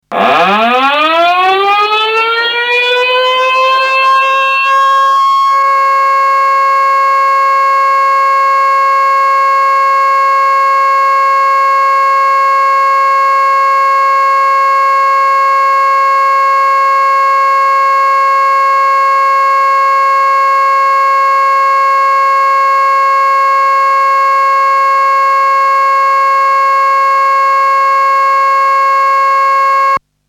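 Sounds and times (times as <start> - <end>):
siren: 0.0 - 30.0.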